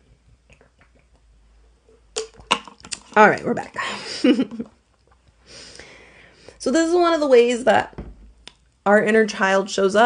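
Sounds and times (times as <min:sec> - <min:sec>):
sipping and gulping water: 0:00.4 - 0:01.3, 0:02.0 - 0:03.2
speech: 0:03.2 - 0:04.8, 0:06.6 - 0:08.0, 0:08.8 - 0:10.0.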